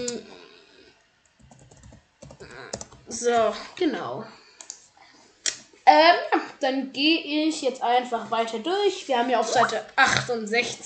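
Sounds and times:
quick typing on a computer keyboard: 0:01.4 - 0:03.0
speech: 0:03.1 - 0:04.4, 0:05.9 - 0:10.8.

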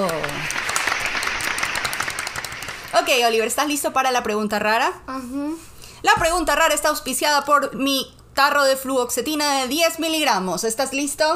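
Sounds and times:
applause: 0:00.0 - 0:03.4
speech: 0:03.1 - 0:11.3.

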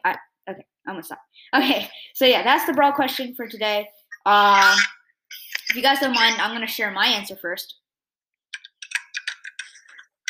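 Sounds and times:
speech: 0:00.0 - 0:05.0, 0:05.7 - 0:07.8
clacking computer keyboard typing: 0:08.5 - 0:10.2.

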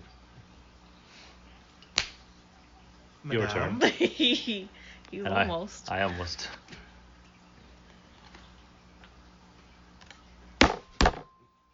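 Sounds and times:
hands slapping a card on a table: 0:02.0 - 0:02.2
speech: 0:03.2 - 0:06.7.

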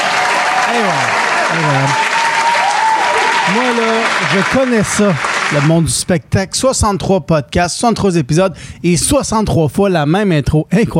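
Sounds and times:
audience applauding at the opening of a show: 0:00.0 - 0:05.9
speech: 0:00.7 - 0:02.1, 0:03.5 - 0:10.9.

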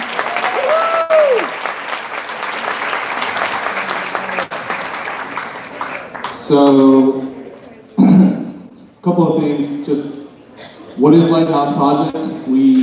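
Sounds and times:
audience applause: 0:00.0 - 0:07.1
speech: 0:06.5 - 0:07.2, 0:09.0 - 0:10.2, 0:11.0 - 0:12.8.

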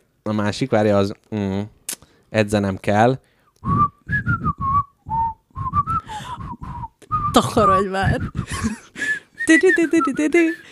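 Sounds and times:
speech: 0:00.2 - 0:04.5, 0:07.4 - 0:08.8, 0:09.5 - 0:10.7
person whistling a washing machine end-of-cycle jingle: 0:03.6 - 0:10.7.

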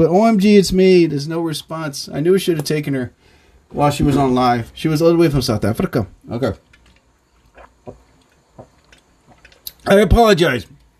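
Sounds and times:
speech: 0:00.0 - 0:06.7, 0:09.8 - 0:10.8
person sipping water: 0:07.0 - 0:09.8.

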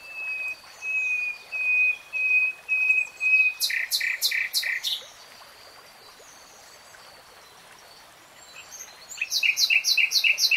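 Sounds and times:
nightingale singing: 0:00.0 - 0:05.1, 0:08.6 - 0:10.5.

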